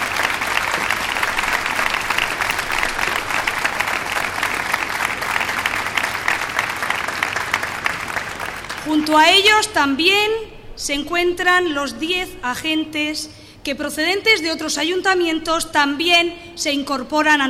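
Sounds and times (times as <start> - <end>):
welcoming applause from audience: 0.0 - 9.1
speech: 9.1 - 17.4.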